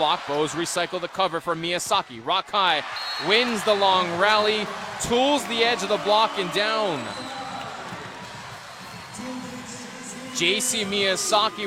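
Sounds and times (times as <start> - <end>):
speech: 0.0 - 7.4, 10.4 - 11.6
arena crowd applauding and cheering: 2.9 - 11.6.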